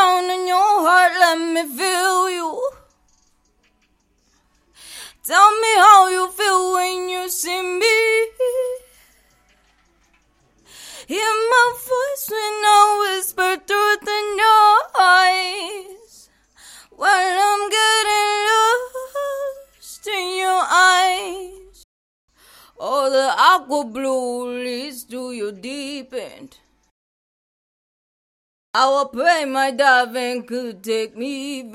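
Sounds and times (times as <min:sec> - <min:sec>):
female pop singing: 0:00.0 - 0:02.9, 0:05.0 - 0:09.0, 0:11.0 - 0:16.2, 0:16.9 - 0:21.8, 0:22.8 - 0:26.6, 0:28.8 - 0:31.7.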